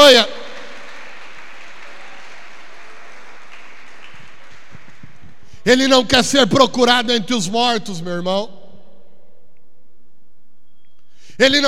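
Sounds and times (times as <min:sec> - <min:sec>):
audience applauding: 0:00.0 - 0:05.6
speech: 0:05.6 - 0:08.6, 0:11.4 - 0:11.6.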